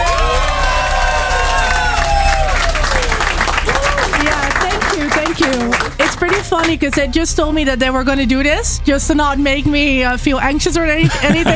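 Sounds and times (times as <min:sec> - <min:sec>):
studio audience cheering and applauding: 0:00.0 - 0:07.0
laughter: 0:00.0 - 0:08.9, 0:09.6 - 0:11.5
speech: 0:06.6 - 0:11.5.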